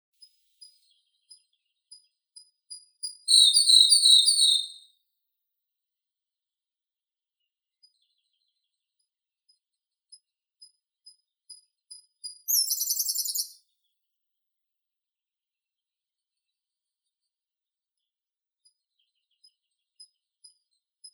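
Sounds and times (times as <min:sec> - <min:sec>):
Siberian blue robin Luscinia cyane singing: 0:03.1 - 0:04.8, 0:12.5 - 0:13.6.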